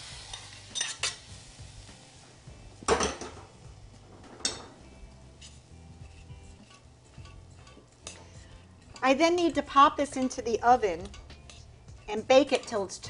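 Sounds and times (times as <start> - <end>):
spoon stirring an oat and nut mixture with sweet potato syrup in a bowl: 5.1 - 13.0
speech: 9.1 - 11.2, 12.1 - 13.0.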